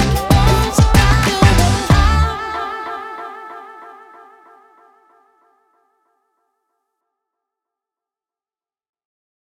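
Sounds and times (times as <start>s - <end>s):
upbeat positive vlog hip hop music: 0.0s - 3.4s.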